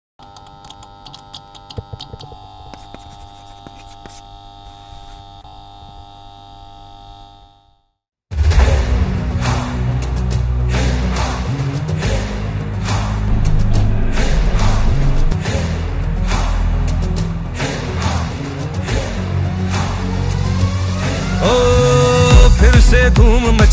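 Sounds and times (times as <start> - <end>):
cricket anthem music: 8.5 - 23.6.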